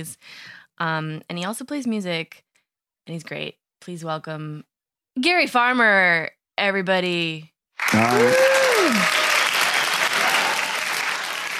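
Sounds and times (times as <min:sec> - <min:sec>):
speech: 0:00.0 - 0:02.5, 0:03.1 - 0:09.2
audience applause: 0:07.8 - 0:11.5.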